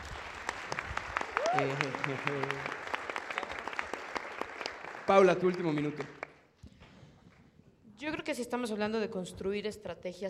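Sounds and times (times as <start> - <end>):
audience applause: 0.0 - 6.4
speech: 1.5 - 2.8, 5.1 - 6.2, 8.3 - 10.2.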